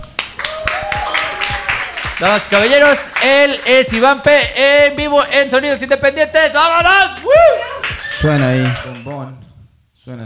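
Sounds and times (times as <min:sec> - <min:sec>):
applause: 0:00.0 - 0:04.3, 0:07.6 - 0:09.3
speech: 0:02.2 - 0:09.4, 0:10.1 - 0:10.2.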